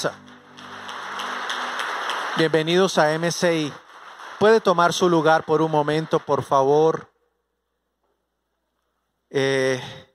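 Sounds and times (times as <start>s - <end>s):
speech: 0.0s - 0.2s, 2.4s - 3.8s, 4.4s - 7.1s, 9.3s - 10.0s
audience applause: 0.0s - 6.9s.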